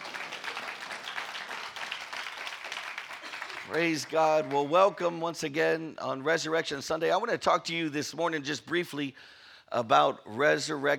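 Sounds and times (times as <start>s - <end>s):
church congregation applauding on Resurrection Sunday: 0.0s - 5.0s
speech: 3.7s - 10.9s.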